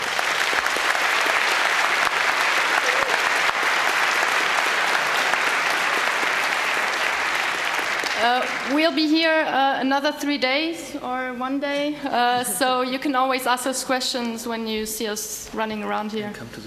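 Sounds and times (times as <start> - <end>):
audience applause: 0.0 - 9.1
speech: 8.2 - 16.6.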